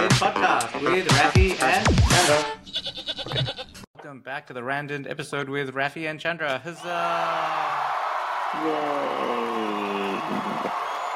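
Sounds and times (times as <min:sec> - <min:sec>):
speech: 0:00.2 - 0:01.6, 0:04.3 - 0:10.8
audience cheer sound effect: 0:06.8 - 0:11.1.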